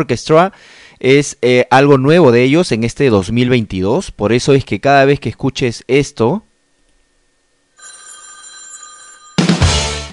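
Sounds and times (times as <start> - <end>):
speech: 0.0 - 6.5
telephone bell jingle: 7.8 - 10.1
music: 9.4 - 10.1.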